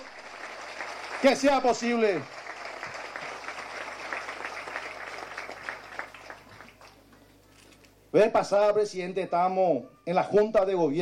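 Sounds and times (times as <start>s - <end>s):
crowd clapping: 0.0s - 7.2s
speech: 1.2s - 2.4s, 8.2s - 11.0s.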